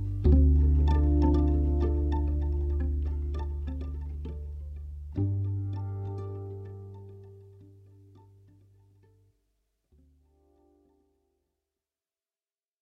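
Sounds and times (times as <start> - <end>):
harp loop: 0.0 - 7.7.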